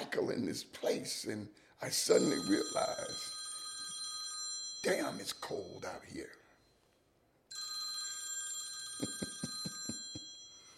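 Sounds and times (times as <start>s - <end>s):
speech: 0.1s - 3.4s, 4.8s - 6.4s
bell ringing: 2.1s - 6.1s, 7.5s - 10.7s.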